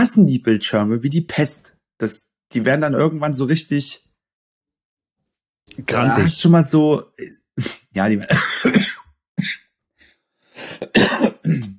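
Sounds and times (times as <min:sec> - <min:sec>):
speech: 0:00.0 - 0:04.1, 0:05.7 - 0:09.6
throat clearing: 0:07.2 - 0:09.6, 0:10.6 - 0:11.7
morning smoker's cough: 0:07.6 - 0:09.6, 0:10.6 - 0:11.7.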